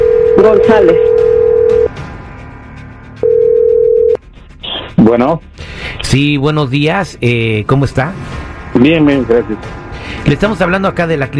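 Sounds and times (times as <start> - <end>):
electronic telephone ring tone: 0.0 - 1.9, 3.2 - 4.2
speech: 0.4 - 1.1, 5.1 - 11.3.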